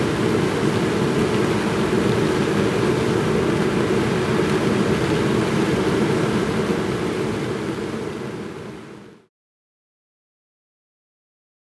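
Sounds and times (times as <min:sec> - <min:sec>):
heavy engine noise: 0:00.0 - 0:08.8.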